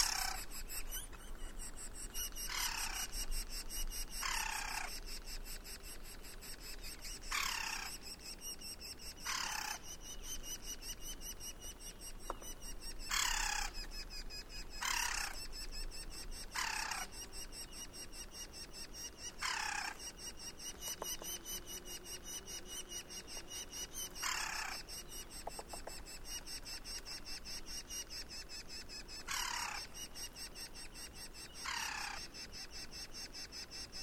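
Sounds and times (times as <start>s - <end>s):
pulsing insect chorus: 0.0s - 34.0s
woodpecker harsh grating calls: 0.0s - 34.0s
woodpecker tap: 12.2s - 13.6s, 20.8s - 21.5s, 25.3s - 26.2s.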